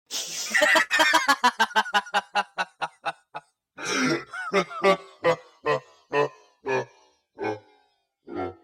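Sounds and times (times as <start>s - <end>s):
person laughing: 0.2s - 6.9s.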